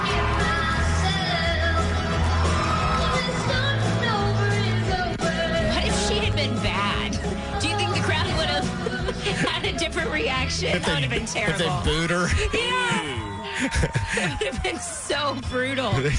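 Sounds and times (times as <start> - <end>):
concert crowd cheering and yelling: 0.0 - 7.0, 10.9 - 16.1
loud live music with singing and deep bass: 0.0 - 16.1
laughter: 8.3 - 15.3
speech: 10.6 - 12.9, 13.6 - 16.1.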